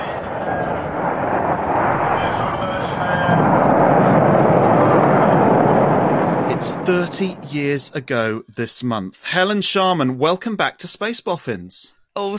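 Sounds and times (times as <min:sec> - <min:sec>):
1991 rocket launch to the Mir space station: 0:00.0 - 0:08.3
speech: 0:07.1 - 0:12.3.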